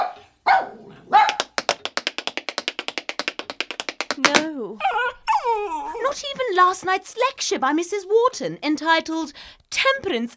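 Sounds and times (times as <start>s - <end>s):
small dog barking: 0.0s - 1.6s
crisp tapping on a hard floor: 1.2s - 4.5s
speech: 4.2s - 5.1s, 6.1s - 10.3s.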